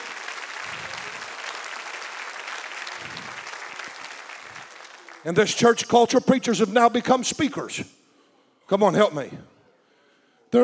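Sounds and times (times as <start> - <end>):
church congregation applause for its worship team: 0.0 - 6.3
speech: 5.2 - 8.0, 8.7 - 9.5.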